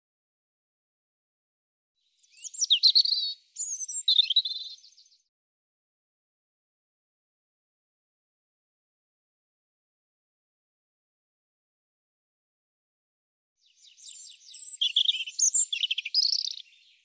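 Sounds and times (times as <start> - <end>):
European robin singing warbled phrases: 2.1 - 5.3, 13.6 - 17.0.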